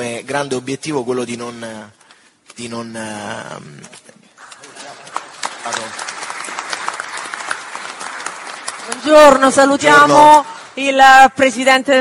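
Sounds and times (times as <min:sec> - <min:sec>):
speech: 0:00.0 - 0:02.0, 0:02.6 - 0:04.1, 0:05.6 - 0:06.0, 0:08.9 - 0:11.9
applause greeting the President of the Italian Senate: 0:04.4 - 0:09.7.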